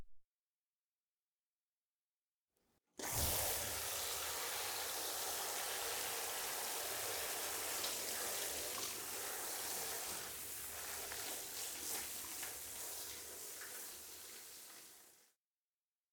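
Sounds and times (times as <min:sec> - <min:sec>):
shower running water: 0:03.0 - 0:15.3.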